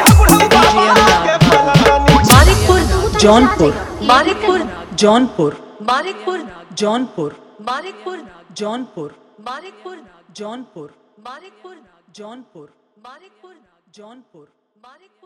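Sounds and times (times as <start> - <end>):
Holi dholki bass music mix: 0.0 - 5.2.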